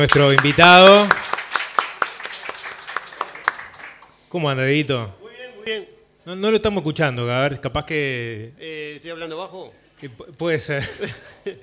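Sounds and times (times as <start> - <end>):
speech: 0.0 - 1.2, 4.3 - 11.6
audience applause: 0.0 - 4.2
laughter: 10.8 - 11.6.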